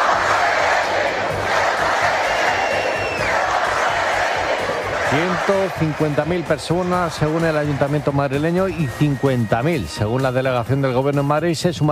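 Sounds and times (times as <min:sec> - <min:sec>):
street protest crowd chanting slogans: 0:00.0 - 0:08.0
speech: 0:05.1 - 0:11.9.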